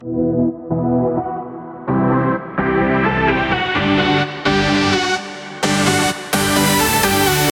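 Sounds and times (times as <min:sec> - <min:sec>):
supersaw synth chord progression in E minor with rising low-pass: 0:00.0 - 0:07.5.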